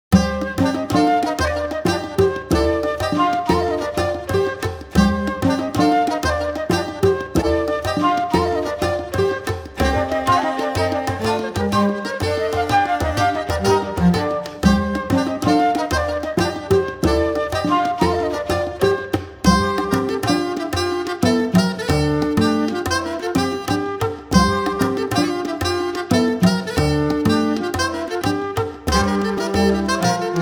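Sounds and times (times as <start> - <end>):
folk dance music: 0.2 - 30.4.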